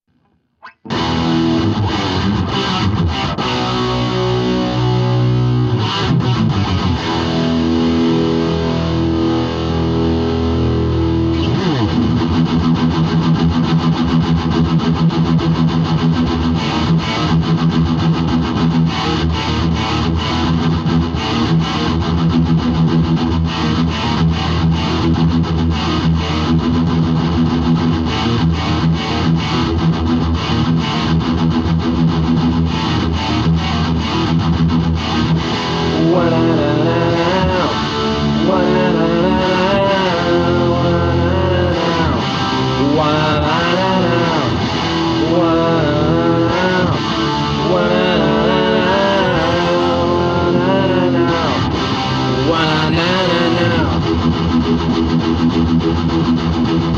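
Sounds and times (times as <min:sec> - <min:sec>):
riff tapes: 0:00.2 - 0:56.9.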